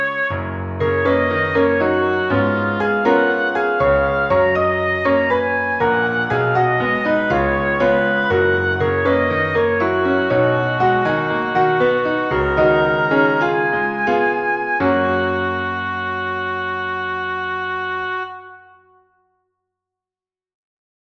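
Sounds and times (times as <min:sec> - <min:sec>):
oboe: 0:00.0 - 0:19.0
piano: 0:00.0 - 0:19.2.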